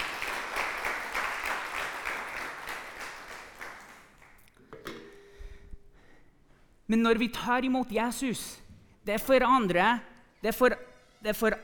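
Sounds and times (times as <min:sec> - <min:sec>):
audience applause: 0:00.0 - 0:04.4
speech: 0:06.9 - 0:11.6.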